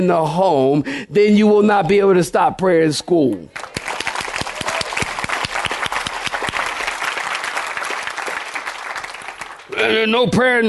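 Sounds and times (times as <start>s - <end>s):
speech: 0.0s - 3.8s, 9.9s - 10.6s
audience applause: 3.6s - 10.1s.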